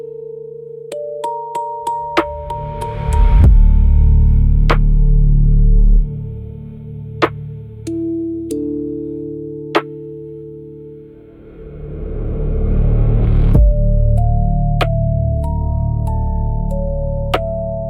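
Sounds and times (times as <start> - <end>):
spiritual spooky soundscape: 1.8 - 8.2, 11.0 - 17.8.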